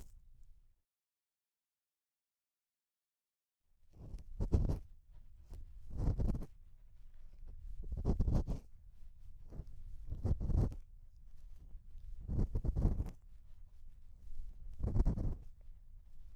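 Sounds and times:
bamboo ear pick scratching deep in the left ear: 4.3s - 4.8s, 5.5s - 6.6s, 7.6s - 8.7s, 9.4s - 10.8s, 11.4s - 13.5s, 14.1s - 16.3s.

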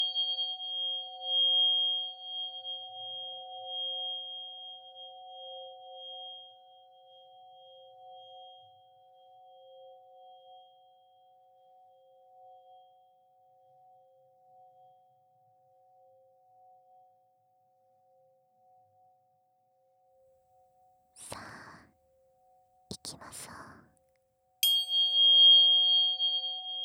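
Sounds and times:
tuning fork healing tones 741 and 528: 0.0s - 13.2s, 24.6s - 26.8s.

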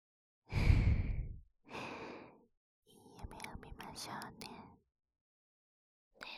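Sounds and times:
close breathing: 0.5s - 2.4s
speech: 4.0s - 4.6s.

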